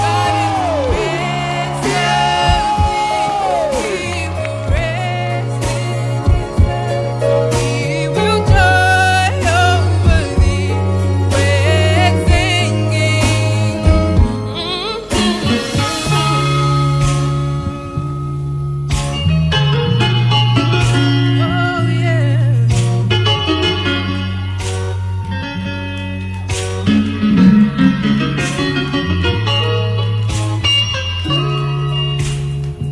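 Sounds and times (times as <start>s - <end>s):
audience whooping, yelling and cheering: 0.0s - 5.5s, 24.7s - 28.8s
loud steady music with a deep sustained bass line: 0.0s - 14.6s, 15.2s - 32.8s.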